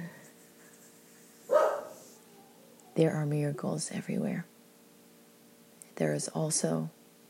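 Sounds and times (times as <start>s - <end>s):
neighbor's dog barking: 1.5s - 2.1s
speech: 3.0s - 4.5s, 6.0s - 7.0s.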